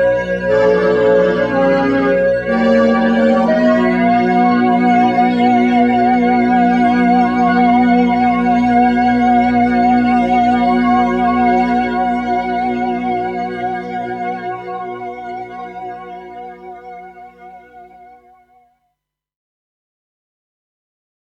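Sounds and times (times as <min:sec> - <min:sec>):
old synthesizer suite: 0:00.2 - 0:16.9.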